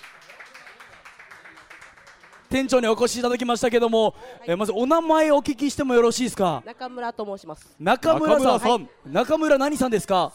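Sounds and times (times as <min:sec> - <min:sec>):
audience applause welcoming a shop manager: 0:00.0 - 0:03.2
speech: 0:02.5 - 0:10.3.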